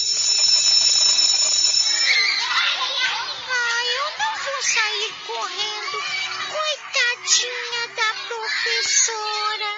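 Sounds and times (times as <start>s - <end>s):
electric school bell ringing for snack break: 0.0s - 3.2s
speech: 4.6s - 9.7s.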